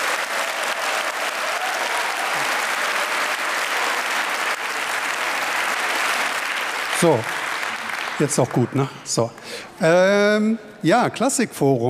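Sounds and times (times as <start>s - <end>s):
audience applause: 0.0s - 9.0s
speech: 7.0s - 7.4s, 8.2s - 11.8s.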